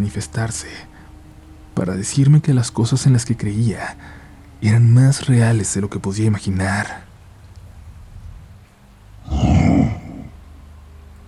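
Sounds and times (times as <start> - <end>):
speech: 0.0 - 1.0, 1.8 - 7.1
creature growling: 9.3 - 10.4.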